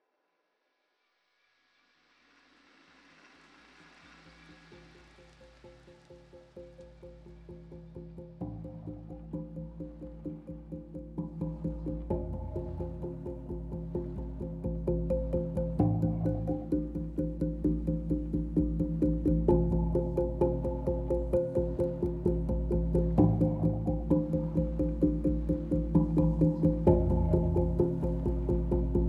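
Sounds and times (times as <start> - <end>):
tongue drum: 7.1 - 29.0.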